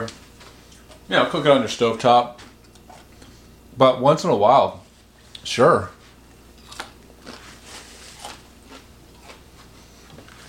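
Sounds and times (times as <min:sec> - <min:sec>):
speech: 0:01.1 - 0:02.4, 0:03.8 - 0:04.8, 0:05.4 - 0:06.0
chewing on cooked bacon: 0:02.5 - 0:03.3, 0:06.3 - 0:10.4.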